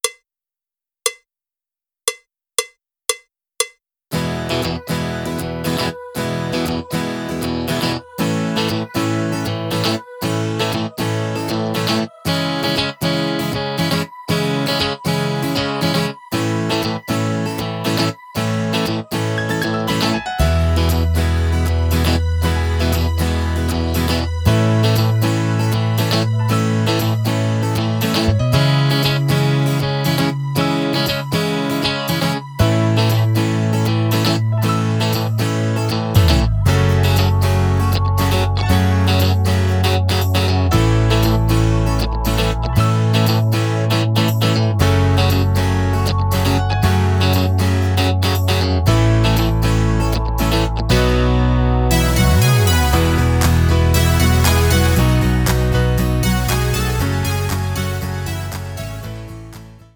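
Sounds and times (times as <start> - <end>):
music without drums: 2.1 - 59.9.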